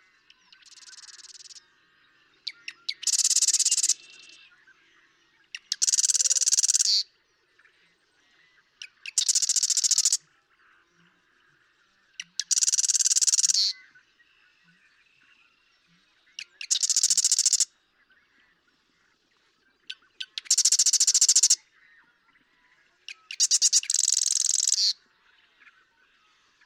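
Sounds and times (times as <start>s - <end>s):
Marsh Wren rattling song: 0.6s - 1.6s, 2.9s - 4.0s, 5.6s - 7.0s, 8.9s - 10.2s, 12.2s - 13.7s, 16.6s - 17.7s, 20.3s - 21.6s, 23.3s - 24.9s.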